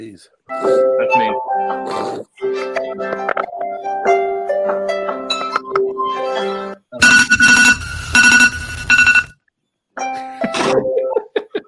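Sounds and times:
speech: 0:00.0 - 0:05.0
Android phone alarm ringtone: 0:07.0 - 0:09.3
laughter: 0:10.2 - 0:11.6.

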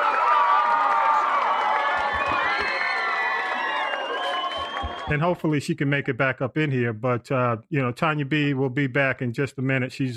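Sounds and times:
applause and cheering for a guest: 0:00.0 - 0:05.4
speech: 0:05.1 - 0:10.1.

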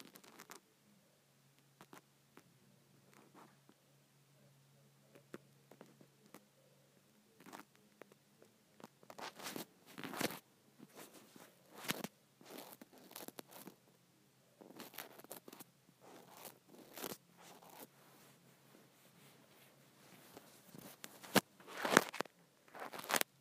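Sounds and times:
faint low hum: 0:00.0 - 0:23.4
scrunchie being handled, rustling and scrunching: 0:08.8 - 0:13.7, 0:14.7 - 0:23.4.

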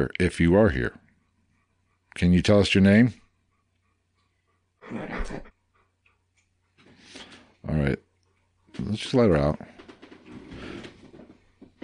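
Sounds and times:
speech: 0:00.0 - 0:01.0, 0:02.2 - 0:03.2, 0:07.7 - 0:08.1, 0:08.8 - 0:09.8
bed creaking: 0:08.7 - 0:11.8.

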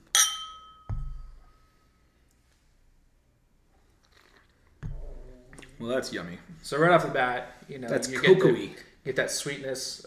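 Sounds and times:
glass clink from a tumbler of whisky: 0:00.0 - 0:01.8
glass set down knock: 0:00.2 - 0:01.4
speech: 0:05.8 - 0:10.0.

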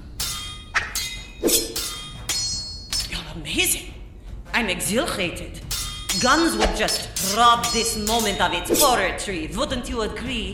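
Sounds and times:
swords clashing in an audio drama duel: 0:00.0 - 0:03.2, 0:05.7 - 0:09.1
speech: 0:03.4 - 0:03.9, 0:04.6 - 0:10.5.

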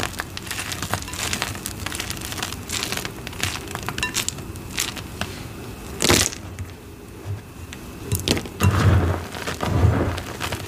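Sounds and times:
gym chalk crushed under a rolling pin: 0:00.0 - 0:05.4, 0:08.1 - 0:10.6.

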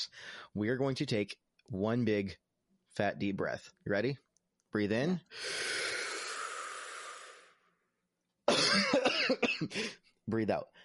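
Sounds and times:
speech: 0:00.0 - 0:02.4, 0:03.0 - 0:05.8, 0:08.8 - 0:10.8
loud cough: 0:08.5 - 0:10.0.

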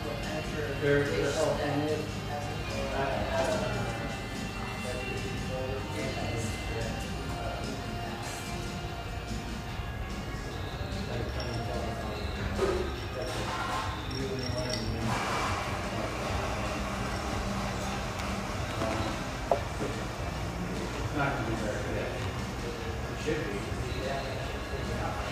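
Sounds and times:
murmur of voices in an espresso house in Vancouver, Washington: 0:00.0 - 0:25.3
cups or dishes clinking: 0:10.9 - 0:15.8, 0:18.6 - 0:20.2.

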